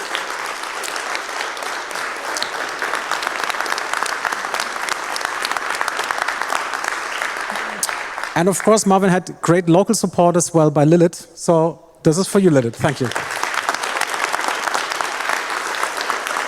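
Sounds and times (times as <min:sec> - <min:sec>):
audience applause: 0:00.0 - 0:08.8, 0:12.8 - 0:16.4
speech: 0:08.4 - 0:13.2.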